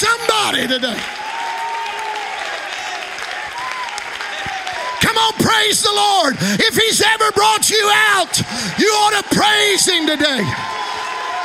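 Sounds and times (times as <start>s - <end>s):
audience clapping hands: 0.0s - 11.4s
speech: 0.6s - 1.2s, 5.3s - 10.8s.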